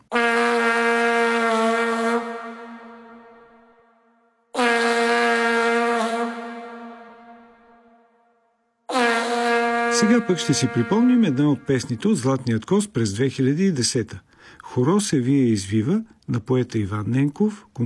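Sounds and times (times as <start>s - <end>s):
vuvuzela horn blowing: 0.0s - 12.2s
speech: 10.0s - 17.8s.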